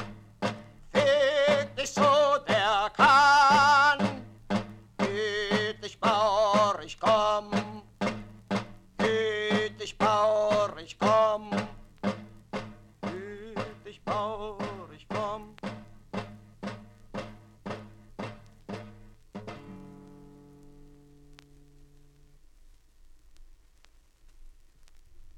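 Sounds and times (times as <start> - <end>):
song over a drum beat: 0.0 - 20.2.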